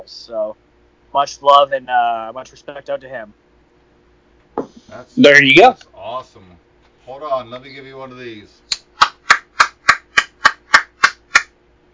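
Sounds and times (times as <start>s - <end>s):
speech: 0.0s - 3.4s, 4.9s - 8.8s
sharp hand claps: 8.7s - 11.6s.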